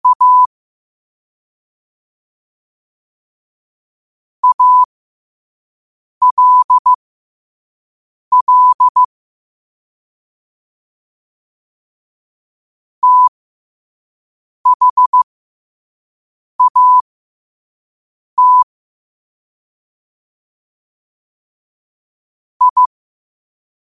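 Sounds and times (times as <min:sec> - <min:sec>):
morse code at 5 wpm: 0:00.0 - 0:00.5, 0:04.4 - 0:04.9, 0:06.2 - 0:07.0, 0:08.3 - 0:09.1, 0:13.0 - 0:13.3, 0:14.7 - 0:15.3, 0:16.6 - 0:17.0, 0:18.4 - 0:18.7, 0:22.6 - 0:22.9.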